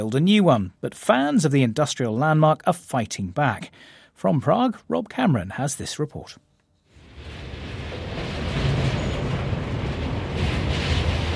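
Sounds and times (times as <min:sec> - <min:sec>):
speech: 0:00.0 - 0:06.4
passenger train rumbling over Vyšehrad steel Railway Bridge: 0:07.0 - 0:11.3.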